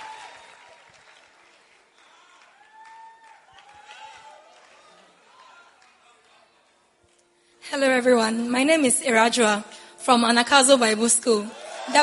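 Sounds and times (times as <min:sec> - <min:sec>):
people cheering: 0:00.0 - 0:06.6, 0:11.5 - 0:12.0
audience applause at a church Bible school testimony service: 0:00.0 - 0:07.2
speech: 0:07.7 - 0:12.0.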